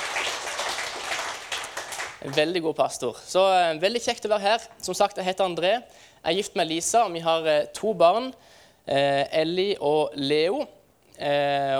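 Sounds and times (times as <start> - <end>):
crowd applauding: 0.0 - 2.5
speech: 2.2 - 11.7.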